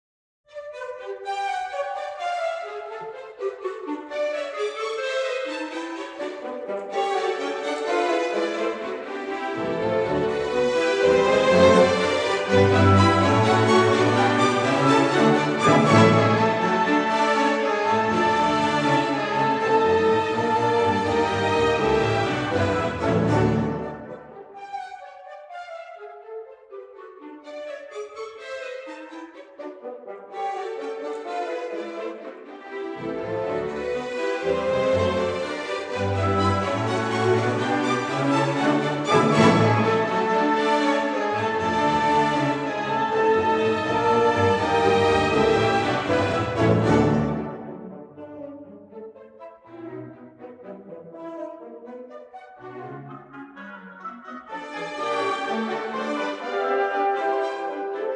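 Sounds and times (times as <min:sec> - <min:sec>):
orchestra playing a gigue in G major: 0:00.8 - 0:24.9, 0:28.2 - 0:58.1.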